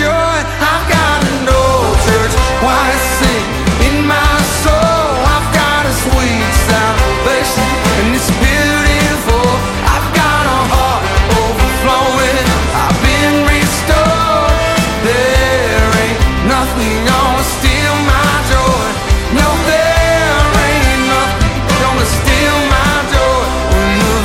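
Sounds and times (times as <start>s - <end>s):
old church choir singing live: 0.2s - 24.2s.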